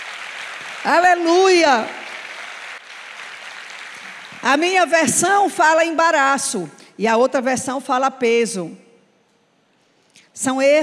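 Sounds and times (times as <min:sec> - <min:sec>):
audience applauding: 0:00.0 - 0:04.8
speech: 0:00.6 - 0:02.0, 0:04.4 - 0:08.8, 0:10.4 - 0:10.8.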